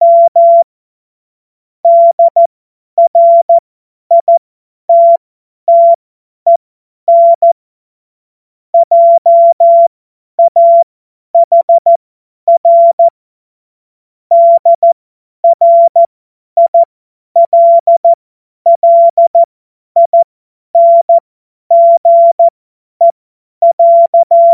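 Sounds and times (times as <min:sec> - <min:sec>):
CW Morse code beeps: 0:00.0 - 0:00.7, 0:01.8 - 0:04.3, 0:04.9 - 0:07.6, 0:08.8 - 0:13.1, 0:14.3 - 0:18.1, 0:18.7 - 0:20.2, 0:20.8 - 0:22.5, 0:23.6 - 0:24.5.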